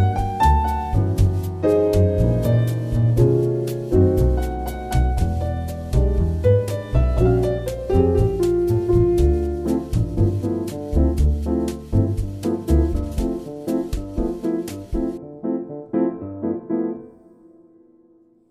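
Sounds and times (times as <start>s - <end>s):
Wave piano: 0.0s - 18.4s.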